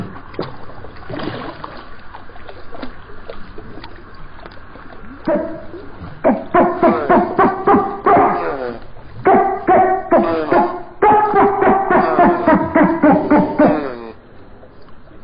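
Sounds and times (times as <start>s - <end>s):
dolphin chatter: 5.3s - 14.1s.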